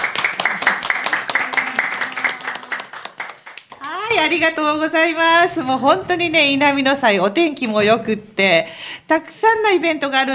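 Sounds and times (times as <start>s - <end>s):
audience applause: 0.0s - 4.0s
speech: 4.2s - 10.3s.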